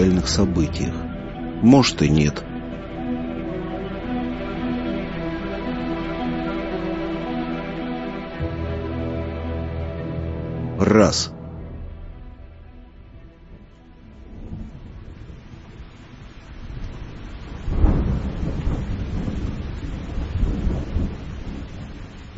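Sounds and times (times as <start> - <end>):
deep roll of thunder: 0.0 - 7.0, 8.4 - 22.3
speech: 0.2 - 1.0, 1.6 - 2.5, 10.8 - 11.4
heavy raindrops drumming on a green hood: 14.1 - 22.3.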